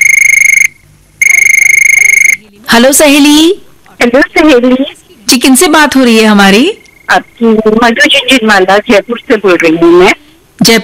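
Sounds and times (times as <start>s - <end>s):
telephone ringing with shrill trilling electronic tone: 0.0s - 2.4s
speech: 2.6s - 10.8s.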